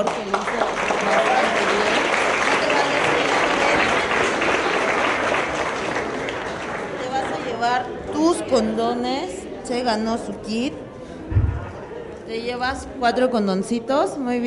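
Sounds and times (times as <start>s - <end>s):
speech: 0.0s - 0.4s, 7.8s - 11.4s, 12.3s - 14.4s
audience applause: 0.0s - 7.6s.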